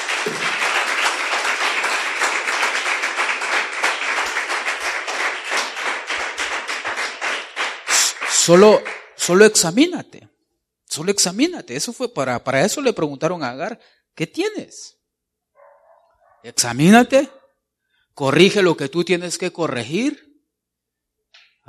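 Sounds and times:
church congregation clapping for the Lord during a sermon: 0.0s - 9.4s
speech: 8.5s - 10.3s, 10.9s - 15.0s, 16.4s - 17.4s, 18.2s - 20.3s.

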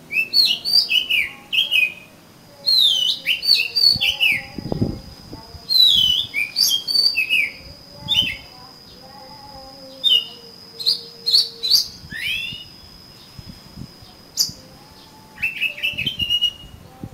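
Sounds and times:
Oriental magpie-robin whistled phrases: 0.0s - 4.6s, 5.7s - 8.5s, 9.9s - 13.3s, 14.4s - 16.8s
thin steady high hum: 0.0s - 17.1s.

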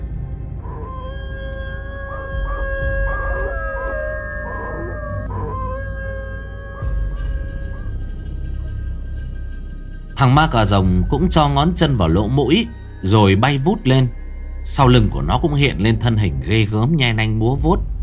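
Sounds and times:
wolf howling eerily: 0.6s - 8.8s
speech: 10.2s - 17.9s.

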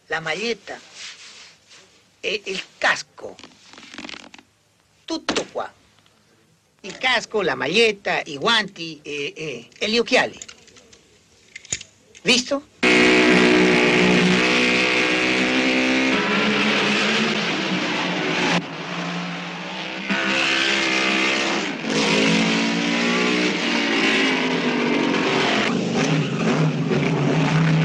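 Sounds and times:
speech: 0.1s - 0.9s, 2.2s - 3.5s, 5.1s - 5.8s, 6.8s - 10.5s, 12.2s - 12.7s
Lancia-derived Ferrari eight-cylinder racing car engine roaring driving past: 12.8s - 27.8s.

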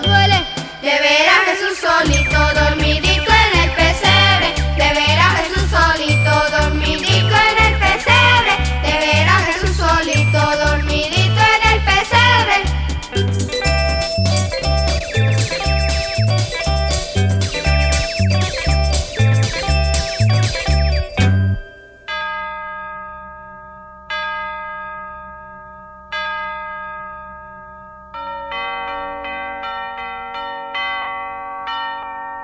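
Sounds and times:
Christmas bells pealing in a chapel: 0.0s - 32.4s.

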